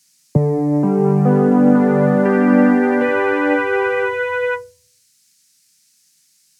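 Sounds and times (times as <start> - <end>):
piano: 0.4 - 4.7.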